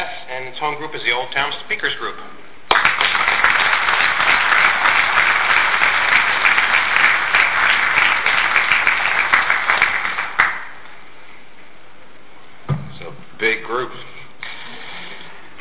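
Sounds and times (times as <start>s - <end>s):
speech: 0.6s - 2.9s
audience applause at a speakers group meeting: 2.7s - 10.8s.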